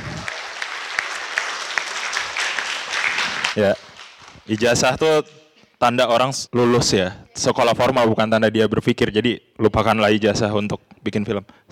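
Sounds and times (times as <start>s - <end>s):
audience applause: 0.0s - 4.8s
speech: 3.6s - 3.9s, 4.5s - 11.7s.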